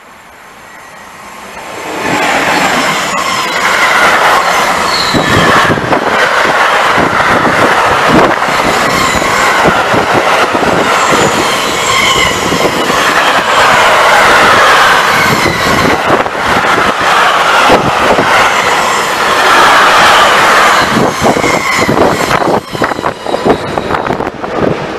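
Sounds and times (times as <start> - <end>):
SNCF freight train passing: 0.0 - 24.9.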